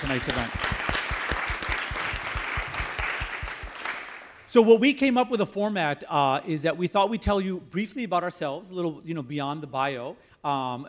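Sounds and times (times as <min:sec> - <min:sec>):
audience applause: 0:00.0 - 0:04.4
speech: 0:00.1 - 0:00.7, 0:04.5 - 0:10.8.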